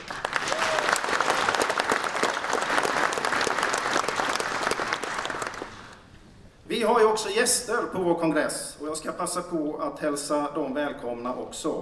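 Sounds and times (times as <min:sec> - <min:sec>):
audience applause: 0:00.0 - 0:06.0
speech: 0:07.2 - 0:11.8.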